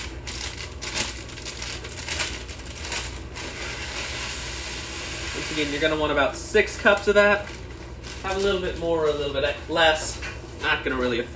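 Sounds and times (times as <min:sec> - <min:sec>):
Rice Krispies cereal pouring into a mixture: 0:03.4 - 0:06.0
speech: 0:05.6 - 0:07.6, 0:08.2 - 0:11.3.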